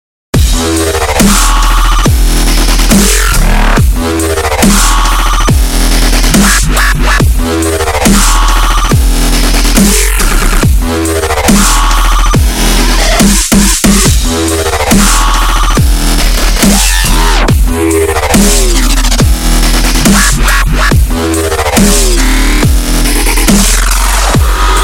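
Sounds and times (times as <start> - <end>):
bare bass: 0.4 - 24.8.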